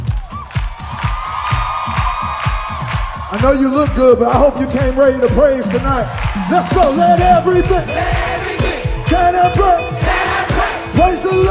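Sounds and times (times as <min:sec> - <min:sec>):
audience clapping in a steady quick rhythm: 0:00.0 - 0:11.4
crowd cheering: 0:00.0 - 0:11.4
speech: 0:03.3 - 0:08.3, 0:11.1 - 0:11.4
sustained musical tone: 0:05.6 - 0:11.2.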